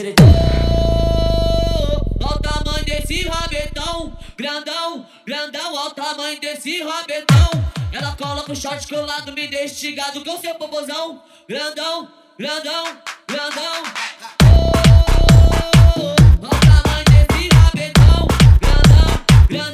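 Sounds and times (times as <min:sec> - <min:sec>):
extreme bass: 0:00.2 - 0:04.3, 0:14.4 - 0:19.7.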